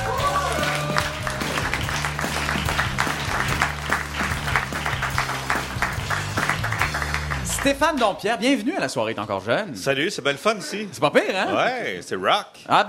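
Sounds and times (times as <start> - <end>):
studio audience at an evening talk show applauding and cheering: 0.0 - 8.3
speech: 7.6 - 12.8.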